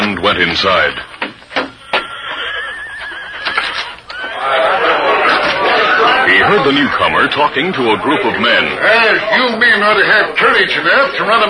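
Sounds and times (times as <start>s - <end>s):
speech: 0.3s - 1.2s, 6.5s - 11.4s
horse neighing: 1.8s - 7.3s
laughter: 2.3s - 9.5s.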